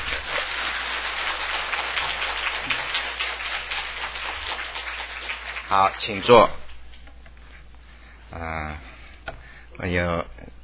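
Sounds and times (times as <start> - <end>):
crowd applauding: 0.0 - 6.8
speech: 5.7 - 6.6, 9.8 - 10.3.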